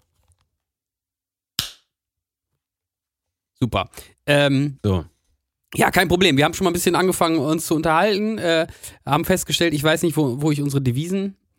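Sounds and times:
single hand clap: 0:01.6 - 0:01.9
speech: 0:03.6 - 0:05.1, 0:05.7 - 0:11.4.

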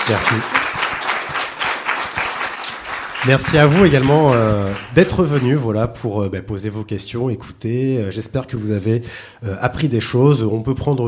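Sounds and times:
audience applause: 0:00.0 - 0:05.6
speech: 0:00.1 - 0:00.6, 0:03.2 - 0:11.0.

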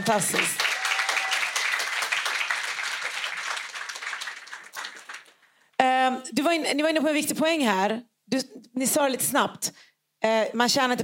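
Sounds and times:
speech: 0:00.0 - 0:00.6, 0:06.1 - 0:11.0
audience applause: 0:00.0 - 0:05.5.

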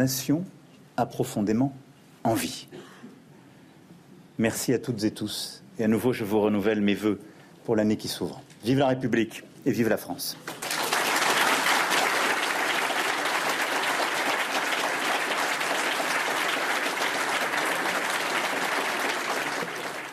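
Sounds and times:
speech: 0:00.0 - 0:02.9, 0:04.4 - 0:10.6
audience applause: 0:10.5 - 0:20.1.

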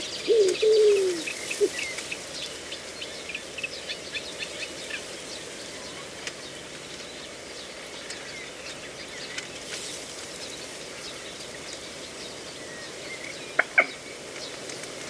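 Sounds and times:
steady hiss: 0:00.0 - 0:15.0
low bird cooing call in a reedbed: 0:00.1 - 0:01.9.

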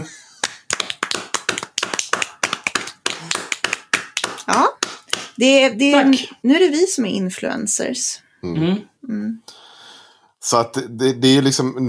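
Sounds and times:
hosts clapping spontaneously: 0:00.4 - 0:06.2
speech: 0:05.4 - 0:08.9, 0:10.5 - 0:11.8.

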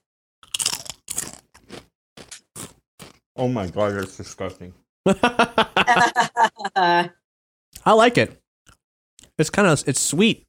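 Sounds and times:
people crunching a sweet, creamy Japanese chip: 0:00.4 - 0:04.2
speech: 0:03.4 - 0:07.2, 0:07.8 - 0:08.4, 0:09.4 - 0:10.4
laughter: 0:05.1 - 0:07.1.

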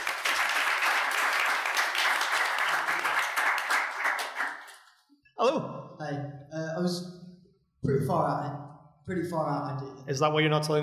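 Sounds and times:
audience applause: 0:00.0 - 0:04.9
speech: 0:05.4 - 0:07.1, 0:07.8 - 0:10.8.

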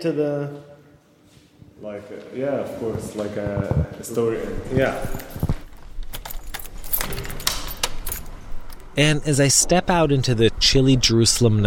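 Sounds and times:
speech: 0:00.0 - 0:00.7, 0:01.8 - 0:05.4, 0:09.0 - 0:11.6
keys jingling: 0:04.7 - 0:09.0
door being locked with keys: 0:06.0 - 0:09.0.

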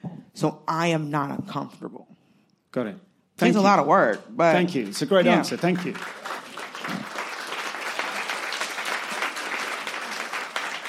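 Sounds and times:
speech: 0:00.4 - 0:02.1, 0:02.7 - 0:06.2
audience applause: 0:05.3 - 0:10.8.

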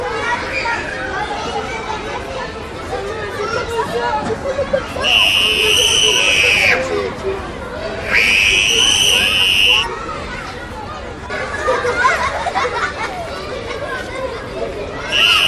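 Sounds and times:
many voices chattering in a school playground at recess: 0:00.0 - 0:15.4
piercing high shrieks: 0:05.0 - 0:06.8, 0:08.0 - 0:09.9, 0:15.1 - 0:15.4
laughter: 0:08.1 - 0:09.9, 0:11.3 - 0:14.4, 0:15.1 - 0:15.4.

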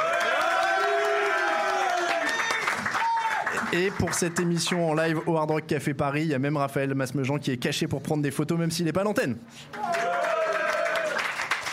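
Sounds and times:
crowd cheering: 0:00.0 - 0:04.1, 0:09.7 - 0:11.7
audience applauding: 0:00.0 - 0:05.3, 0:09.7 - 0:11.7
speech: 0:03.7 - 0:10.0.

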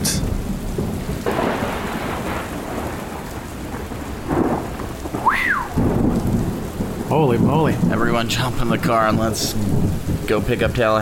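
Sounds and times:
heavy rain: 0:00.0 - 0:11.0
thunder rumbling: 0:00.0 - 0:11.0
whistle-like tone: 0:05.2 - 0:05.7
speech: 0:07.1 - 0:11.0.

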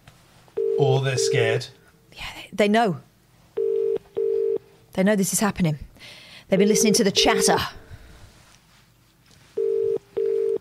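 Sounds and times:
faint hiss: 0:00.0 - 0:10.6
English telephone tone beeps: 0:00.6 - 0:01.3, 0:03.6 - 0:04.6, 0:09.6 - 0:10.6
speech: 0:00.8 - 0:03.1, 0:05.0 - 0:07.8.

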